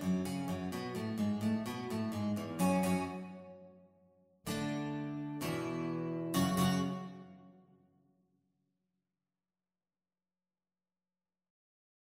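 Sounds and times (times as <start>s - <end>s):
guitar ensemble: 0.0s - 3.5s, 4.5s - 7.4s.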